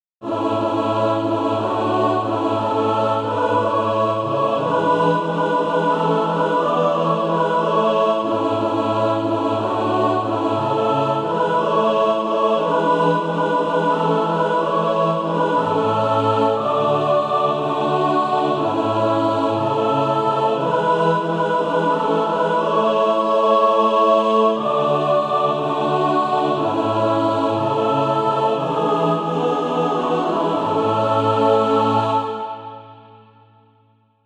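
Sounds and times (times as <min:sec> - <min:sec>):
mixed SATB choir practice music: 0:00.2 - 0:33.6.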